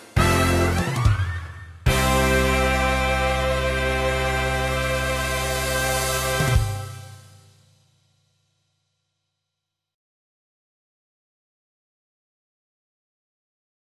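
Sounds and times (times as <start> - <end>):
live soul band playing: 0.0 - 7.3.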